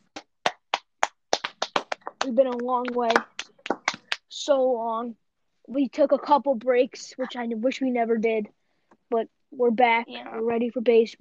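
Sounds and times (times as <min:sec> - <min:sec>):
hand claps: 0:00.0 - 0:04.4
speech: 0:02.2 - 0:03.4, 0:04.3 - 0:11.1.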